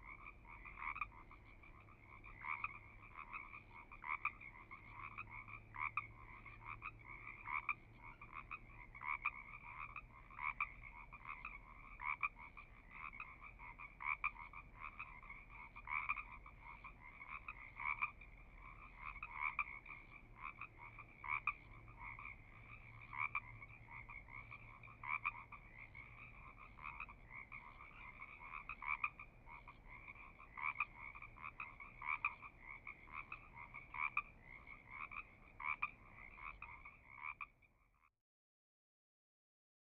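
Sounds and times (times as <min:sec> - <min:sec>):
frogs croaking: 0:00.0 - 0:38.1.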